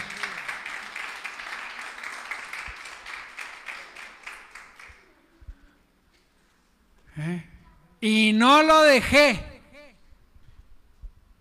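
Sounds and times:
applause: 0.0 - 5.2
speech: 7.2 - 9.5.

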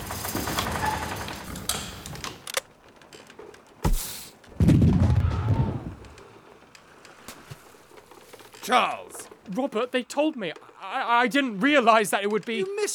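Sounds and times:
busy outdoor wash: 0.0 - 12.9
single sharp gunshot: 3.8 - 5.8
loud low rumbling boom: 4.6 - 6.0
speech: 8.7 - 12.9.

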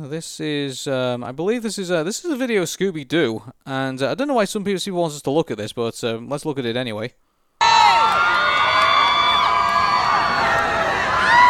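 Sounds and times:
speech: 0.0 - 8.3
large crowd cheering and screaming: 7.6 - 11.4.

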